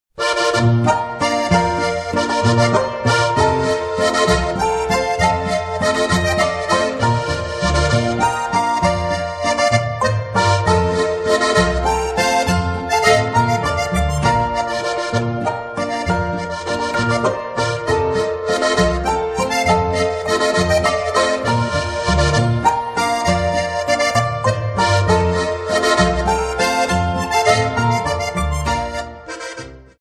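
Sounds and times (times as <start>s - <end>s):
waltz music: 0.2s - 30.0s.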